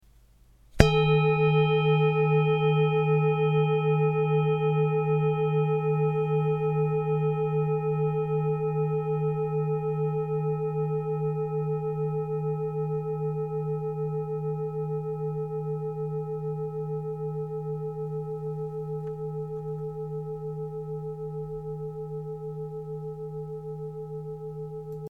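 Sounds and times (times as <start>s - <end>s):
singing bowl: 0.8s - 25.0s.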